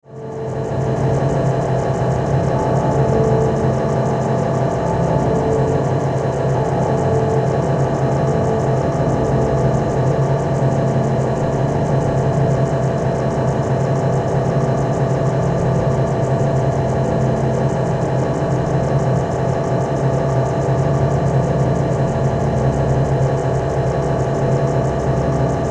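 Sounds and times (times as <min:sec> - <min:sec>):
dark rotating motor drone: 0:00.3 - 0:25.6.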